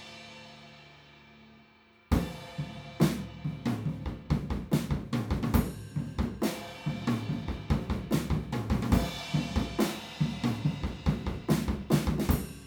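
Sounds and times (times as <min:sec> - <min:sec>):
drums: 0:00.0 - 0:12.6.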